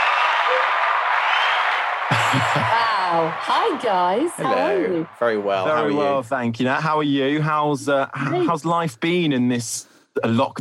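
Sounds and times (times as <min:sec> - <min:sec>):
audience applause welcoming a guest onto a motorsport talk show: 0:00.0 - 0:06.3
laughter: 0:02.0 - 0:06.2, 0:07.1 - 0:08.9
speech: 0:02.3 - 0:10.6.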